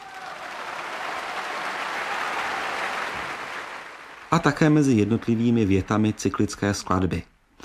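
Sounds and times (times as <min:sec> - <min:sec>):
concert audience applause: 0:00.0 - 0:06.6
speech: 0:04.3 - 0:07.6.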